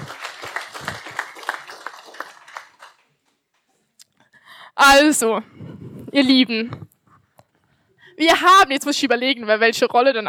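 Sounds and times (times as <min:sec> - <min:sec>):
audience applause: 0:00.0 - 0:03.4
speech: 0:04.8 - 0:06.9, 0:08.2 - 0:10.2.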